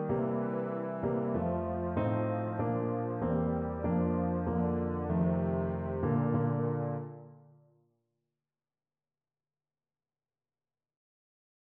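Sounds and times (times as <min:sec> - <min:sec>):
euphonium playing a hymn: 0:00.0 - 0:07.2.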